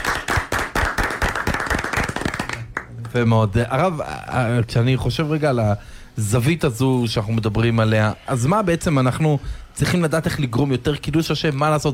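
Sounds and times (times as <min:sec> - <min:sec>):
hand clapping: 0:00.0 - 0:03.0
speech: 0:03.1 - 0:11.9.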